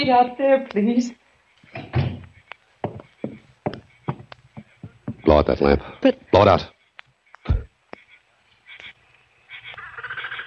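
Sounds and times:
speech: 0.0 - 2.0, 5.3 - 6.8
door pushed shut with heavy low thud: 1.8 - 2.3.

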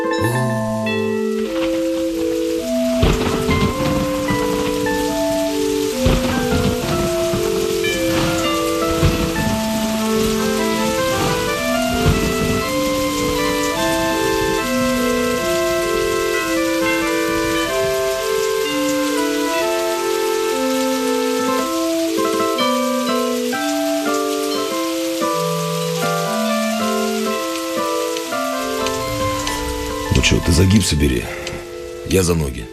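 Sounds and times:
heavy rain pouring: 0.0 - 32.7
slow melodic tune: 0.0 - 32.7
sharp thunder cracks: 1.2 - 20.0, 27.7 - 32.7
speech: 30.8 - 31.4, 32.1 - 32.7.

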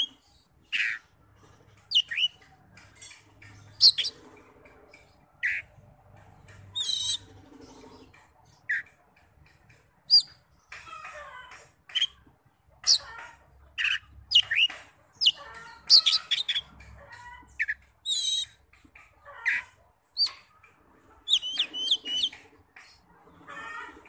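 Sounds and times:
Oriental magpie-robin chattering: 0.0 - 1.1, 1.8 - 4.2, 6.7 - 10.8, 13.8 - 20.6, 21.2 - 22.9.

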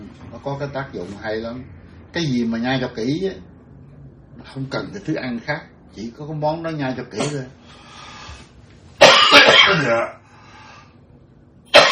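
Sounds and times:
speech: 0.1 - 3.5, 4.4 - 7.8, 9.7 - 10.2
coughing: 9.0 - 10.2, 11.7 - 11.8.

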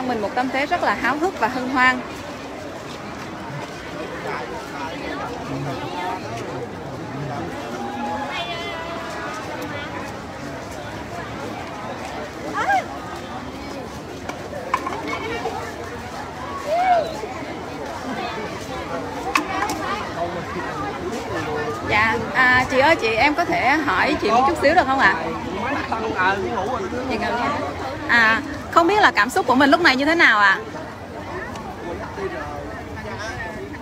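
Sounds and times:
crowd chatter gathered to watch a military parade in Ho Chi Minh City: 0.0 - 33.8
speech: 0.1 - 2.2, 21.9 - 30.8
people shouting: 16.6 - 17.2.

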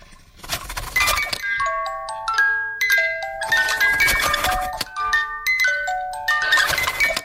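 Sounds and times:
faint rustling of toilet paper: 0.0 - 1.4, 3.5 - 4.9, 6.5 - 7.2
music box built into a toilet paper holder playing a tune: 1.1 - 7.2.

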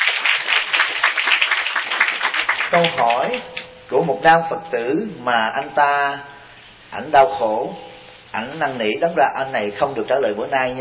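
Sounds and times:
audience applause after a Buddhist dharma talk: 0.0 - 3.7
speech: 2.7 - 6.3, 6.9 - 10.8.

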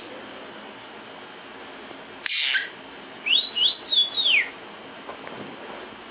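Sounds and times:
lovebird giving shrill sharp chirps: 2.3 - 4.5.

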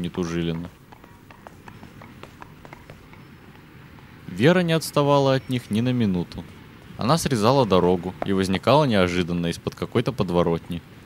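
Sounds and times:
speech: 0.0 - 0.8, 4.3 - 10.9
horse hooves clip-clopping on cobblestone pavement: 0.0 - 5.8, 7.9 - 8.7, 10.8 - 11.0.

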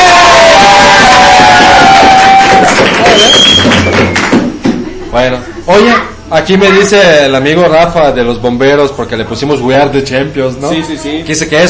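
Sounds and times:
shouted voices: 0.0 - 3.5
crowd clapping: 0.0 - 4.8
speech: 5.7 - 11.6.

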